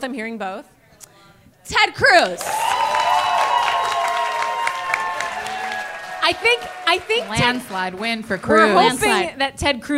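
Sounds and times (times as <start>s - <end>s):
speech: 0.0s - 0.8s, 1.7s - 2.8s, 6.3s - 9.9s
crowd applauding: 2.2s - 9.3s.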